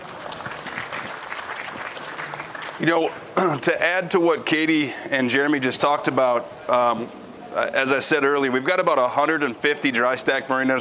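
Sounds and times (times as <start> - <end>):
audience clapping at a company presentation: 0.0 - 3.2
speech: 2.8 - 10.7.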